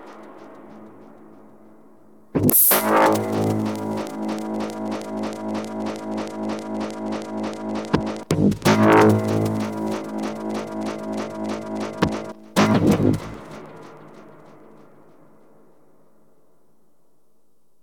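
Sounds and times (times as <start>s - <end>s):
synth oscillator riffs: 2.4s - 14.1s.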